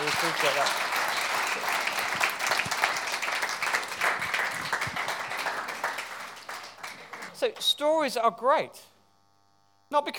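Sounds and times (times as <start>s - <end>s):
audience applause: 0.0s - 7.6s
speech: 0.2s - 1.8s, 7.4s - 8.9s, 9.9s - 10.1s.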